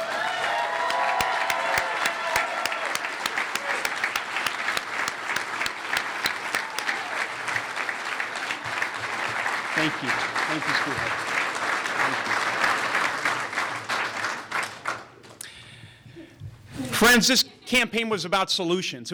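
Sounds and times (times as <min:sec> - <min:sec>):
audience applause: 0:00.0 - 0:15.2
speech: 0:09.8 - 0:11.3, 0:17.0 - 0:19.1.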